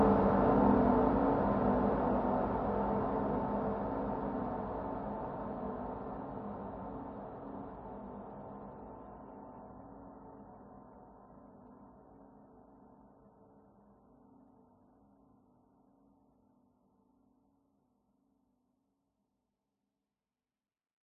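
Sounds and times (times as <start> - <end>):
dark airy sinister horror drone: 0.0 - 6.8.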